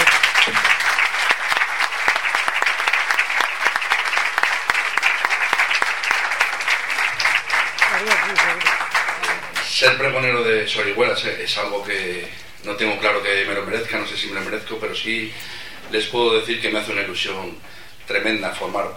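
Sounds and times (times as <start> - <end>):
audience applause: 0.0 - 10.1
speech: 9.8 - 18.9.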